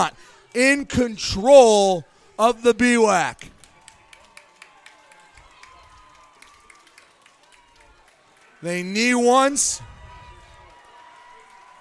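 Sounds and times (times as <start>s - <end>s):
speech: 0.0s - 3.5s, 8.6s - 9.9s
football fans in the stands cheering: 1.6s - 11.7s
scattered claps and whoops: 3.4s - 8.6s, 9.8s - 11.7s.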